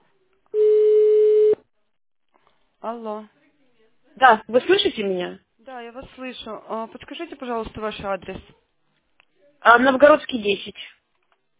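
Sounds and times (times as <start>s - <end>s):
electronic beep on a telephone line from pressed keypad buttons: 0.6s - 1.6s
speech: 2.8s - 3.4s, 4.2s - 8.6s, 9.6s - 11.0s.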